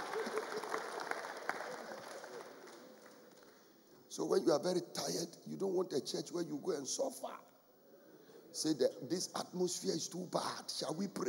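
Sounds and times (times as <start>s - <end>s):
audience clapping: 0.0s - 3.7s
speech: 4.2s - 7.5s, 8.6s - 11.2s.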